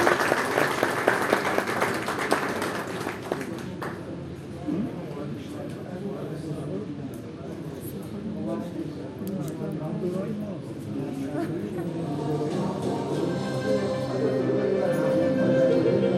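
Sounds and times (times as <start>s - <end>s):
crowd applause: 0.0s - 4.0s
murmur of voices: 2.8s - 16.1s.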